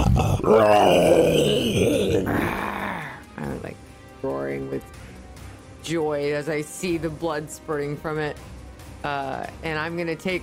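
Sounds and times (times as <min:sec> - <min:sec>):
voice imitating a wounded creature snarling after being struck by a javelin: 0:00.0 - 0:03.3
speech: 0:00.4 - 0:02.6, 0:04.2 - 0:05.0, 0:05.8 - 0:08.4, 0:09.0 - 0:10.4.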